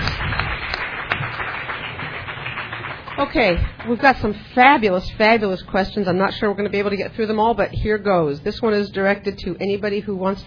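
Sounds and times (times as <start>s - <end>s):
audience applauding three speakers at a panel event: 0.0s - 4.8s
speech: 3.2s - 10.4s.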